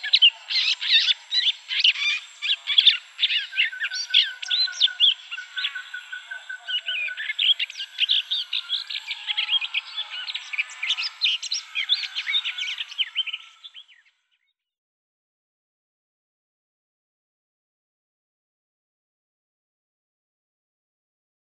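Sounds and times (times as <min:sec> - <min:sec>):
garden warbler song: 0:00.0 - 0:14.7.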